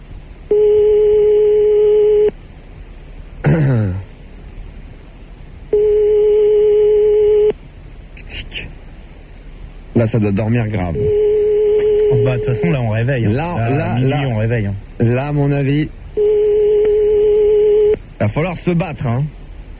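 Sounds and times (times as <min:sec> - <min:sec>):
telephone ringing tone on the line: 0:00.5 - 0:02.3, 0:05.7 - 0:07.5, 0:11.0 - 0:12.8, 0:16.2 - 0:18.0
speech: 0:10.0 - 0:11.2, 0:12.2 - 0:16.0, 0:18.2 - 0:19.4.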